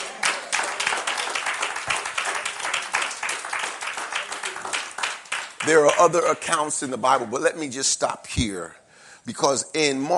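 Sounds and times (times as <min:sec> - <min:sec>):
audience hand clapping: 0:00.0 - 0:06.7
speech: 0:05.6 - 0:10.1.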